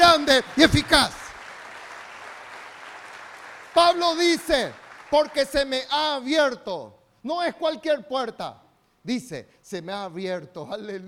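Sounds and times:
audience applauding: 0:00.0 - 0:05.7
speech: 0:00.2 - 0:01.2, 0:03.8 - 0:11.0.

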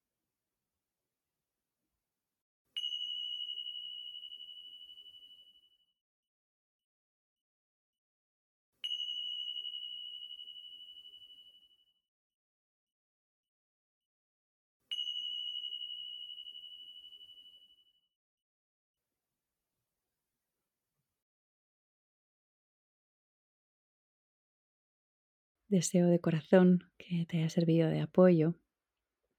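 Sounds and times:
small meditation bells ringing: 0:02.8 - 0:06.0, 0:08.8 - 0:12.0, 0:14.9 - 0:18.1
speech: 0:25.7 - 0:28.6.

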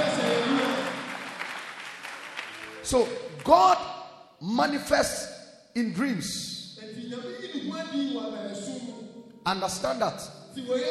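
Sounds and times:
audience clapping: 0:00.0 - 0:03.8
speech: 0:02.9 - 0:08.8, 0:09.4 - 0:10.8.

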